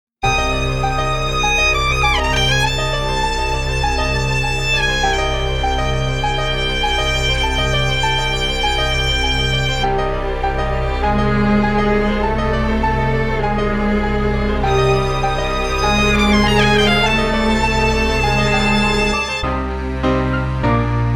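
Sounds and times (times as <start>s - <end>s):
instrumental music: 0.2s - 21.1s.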